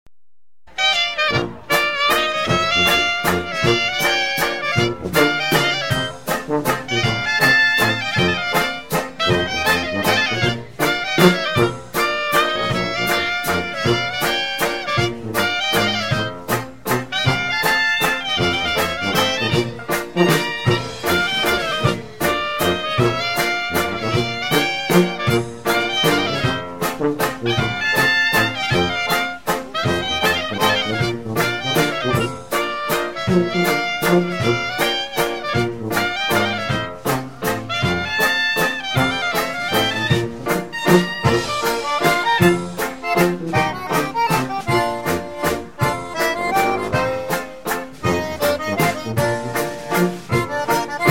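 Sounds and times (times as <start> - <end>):
waltz music: 0.7 - 51.1.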